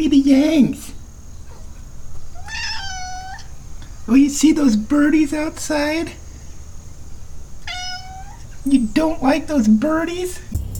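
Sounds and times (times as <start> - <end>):
speech: 0.0 - 0.9, 4.1 - 6.2, 8.7 - 10.6
cat meowing: 2.2 - 3.8, 7.6 - 8.6.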